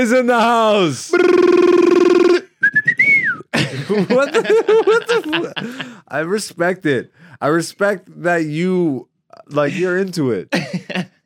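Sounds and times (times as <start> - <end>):
speech: 0.0 - 1.9, 3.9 - 11.1
person whistling imitation of an ibis call: 1.2 - 3.5
people laughing: 3.5 - 6.0, 10.5 - 11.2.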